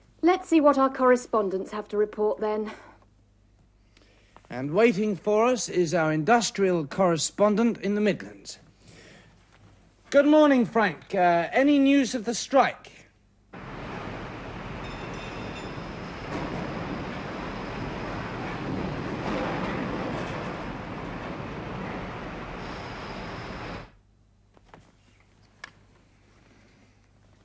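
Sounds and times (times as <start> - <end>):
speech: 0.3 - 2.9, 4.5 - 8.6, 10.1 - 13.0
high metallic whine: 13.6 - 19.8, 20.5 - 24.0
train passing on rails: 13.6 - 24.0.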